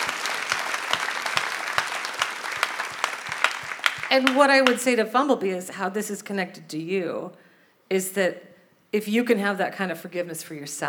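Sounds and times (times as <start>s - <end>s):
small group clapping: 0.0s - 4.9s
speech: 4.1s - 10.8s.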